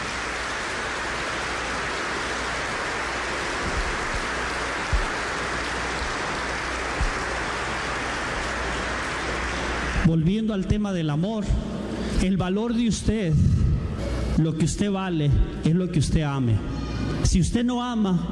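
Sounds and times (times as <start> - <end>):
large crowd applauding: 0.0 - 10.3
speech: 10.1 - 13.6, 14.4 - 18.3.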